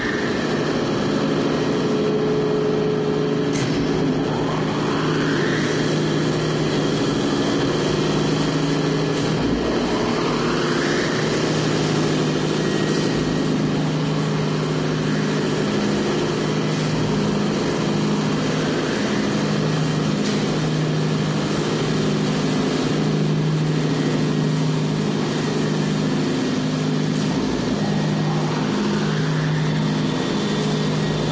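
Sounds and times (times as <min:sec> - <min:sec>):
cartoon motor generator running steady: 0:00.0 - 0:31.3.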